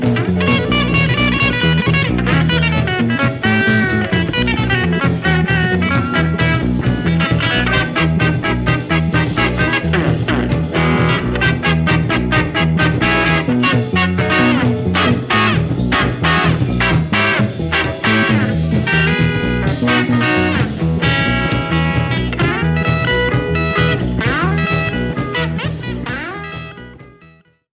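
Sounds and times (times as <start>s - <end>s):
guitar rag: 0.0s - 27.4s.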